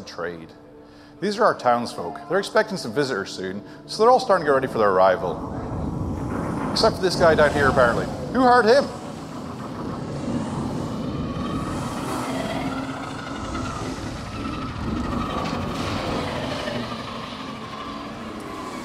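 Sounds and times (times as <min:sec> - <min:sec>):
speech: 0:00.1 - 0:05.8, 0:06.8 - 0:09.0
airships arriving with a rumbling mechanical drone in an ARKit game: 0:04.0 - 0:18.8
rhythmic clattering churn of arriving airships: 0:04.7 - 0:18.8.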